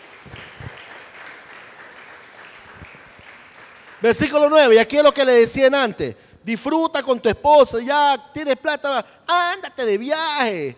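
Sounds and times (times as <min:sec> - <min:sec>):
church congregation applauding: 0:00.0 - 0:05.8
speech: 0:04.0 - 0:10.7.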